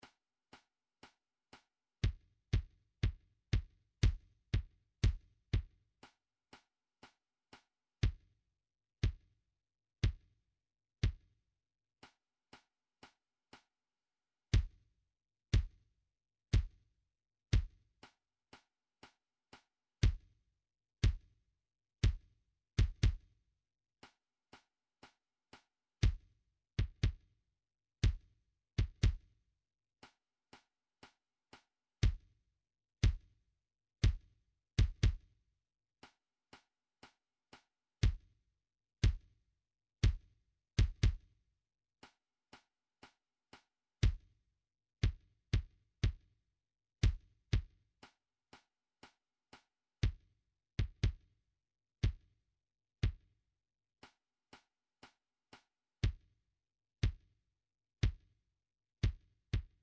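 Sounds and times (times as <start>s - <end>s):
kick drum: 2.0s - 5.8s, 8.0s - 8.3s, 9.0s - 9.3s, 10.0s - 10.3s, 11.0s - 11.3s, 14.5s - 14.8s, 15.5s - 15.8s, 16.5s - 16.8s, 17.5s - 17.9s, 20.0s - 20.4s, 21.0s - 21.3s, 22.0s - 23.3s, 26.0s - 27.3s, 28.0s - 29.3s, 32.0s - 32.4s, 33.0s - 33.4s, 34.0s - 35.4s, 38.0s - 38.3s, 39.0s - 39.4s, 40.0s - 41.3s, 44.0s - 44.3s, 45.0s - 46.3s, 47.0s - 47.8s, 50.0s - 51.3s, 52.0s - 52.4s, 53.0s - 53.3s, 56.0s - 56.3s, 57.0s - 57.3s, 58.0s - 58.3s, 59.0s - 59.8s.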